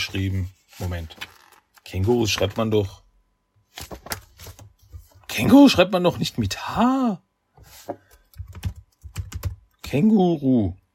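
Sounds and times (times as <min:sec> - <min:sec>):
speech: 0:00.0 - 0:01.3, 0:01.9 - 0:03.0, 0:03.8 - 0:04.1, 0:05.4 - 0:08.1, 0:09.9 - 0:10.8
typing on a computer keyboard: 0:08.3 - 0:09.7.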